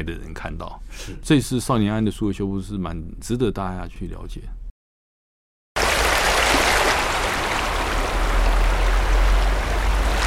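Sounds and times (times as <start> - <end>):
speech: 0.0 - 4.6
small waves washing on a sandy beach: 5.8 - 10.2.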